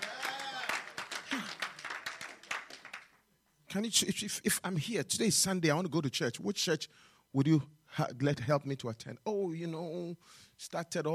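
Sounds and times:
audience applauding: 0:00.0 - 0:03.2
speech: 0:03.7 - 0:11.1.

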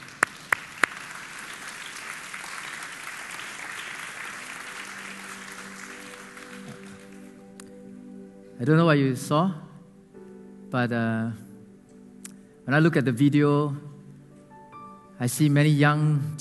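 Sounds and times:
audience clapping: 0:00.0 - 0:07.6
speech: 0:08.6 - 0:09.6, 0:10.7 - 0:11.4, 0:12.7 - 0:13.9, 0:15.2 - 0:16.4.

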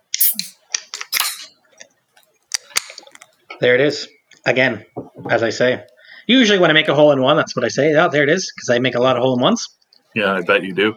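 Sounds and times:
beer bottle being opened: 0:00.1 - 0:01.5
speech: 0:03.6 - 0:10.9.

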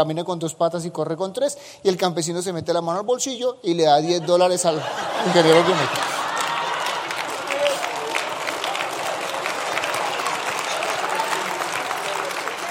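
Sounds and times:
speech: 0:00.0 - 0:06.1
laughter: 0:04.0 - 0:08.9
audience applause: 0:05.0 - 0:12.6.

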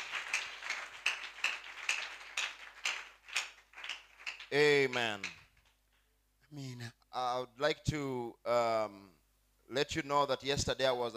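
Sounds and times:
audience clapping in praise: 0:00.0 - 0:06.0
speech: 0:04.5 - 0:05.4, 0:06.5 - 0:11.1.

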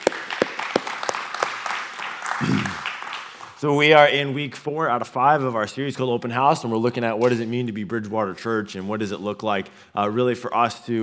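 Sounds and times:
audience applause: 0:00.0 - 0:03.6
speech: 0:03.6 - 0:11.0.

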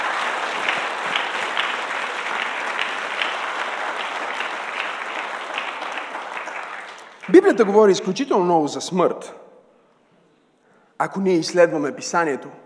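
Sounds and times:
audience applause: 0:00.0 - 0:08.0
speech: 0:07.3 - 0:09.4, 0:11.0 - 0:12.6.

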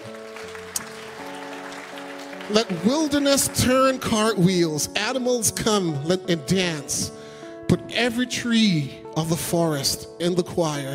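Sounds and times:
audience clapping hands: 0:00.0 - 0:04.4
speech: 0:02.5 - 0:07.2, 0:07.9 - 0:10.9.

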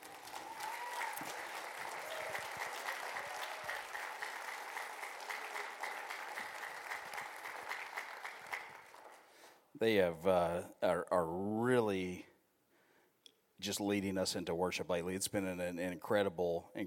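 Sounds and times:
audience applause: 0:00.0 - 0:09.3
speech: 0:09.8 - 0:12.3, 0:13.6 - 0:16.8.

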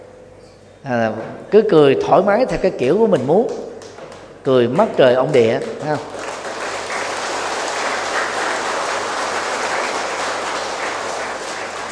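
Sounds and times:
speech: 0:00.8 - 0:03.7, 0:04.4 - 0:06.2
audience clapping at a laughter practice session: 0:03.0 - 0:11.9.

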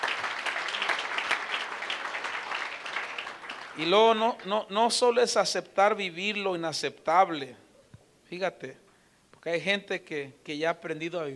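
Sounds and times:
audience applause: 0:00.0 - 0:04.5
speech: 0:03.8 - 0:07.6, 0:08.3 - 0:08.8, 0:09.4 - 0:11.3.

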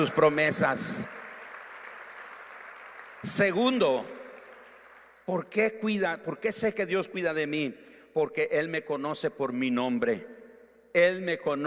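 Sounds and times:
speech: 0:00.0 - 0:01.2, 0:03.2 - 0:04.2, 0:05.3 - 0:11.6
audience clapping: 0:00.0 - 0:05.5.

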